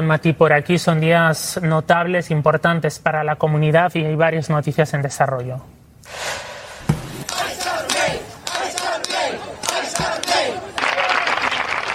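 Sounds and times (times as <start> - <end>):
speech: 0.0 - 6.5
vigil crowd chanting demanding justice: 6.4 - 11.5.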